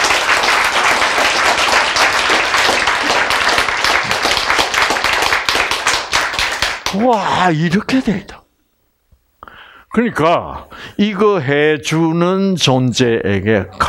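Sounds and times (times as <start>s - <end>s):
audience applause: 0.0s - 7.4s
speech: 7.0s - 8.4s, 10.0s - 13.8s.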